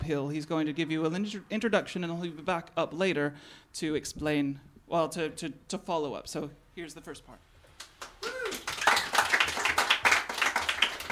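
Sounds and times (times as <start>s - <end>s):
speech: 0.1s - 7.5s
audience applause: 7.8s - 11.1s.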